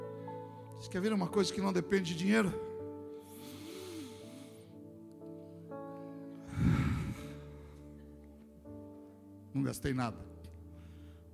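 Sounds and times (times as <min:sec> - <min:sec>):
speech: 0:00.8 - 0:02.7, 0:09.6 - 0:10.4
deep breathing in and out: 0:03.1 - 0:08.2, 0:10.7 - 0:11.3.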